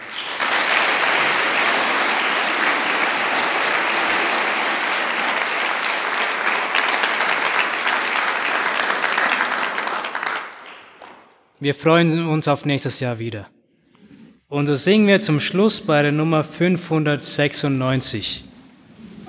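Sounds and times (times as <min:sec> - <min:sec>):
applause: 0:00.0 - 0:11.5
speech: 0:11.6 - 0:13.6, 0:14.5 - 0:18.5.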